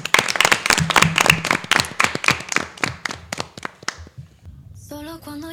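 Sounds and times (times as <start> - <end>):
audience applause: 0.0 - 4.0.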